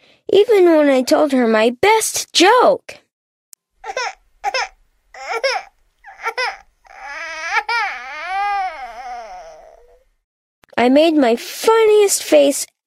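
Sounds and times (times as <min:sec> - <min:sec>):
speech: 0:00.3 - 0:03.0, 0:03.8 - 0:04.7, 0:05.3 - 0:05.7, 0:10.8 - 0:12.7
newborn baby crying: 0:03.8 - 0:10.0.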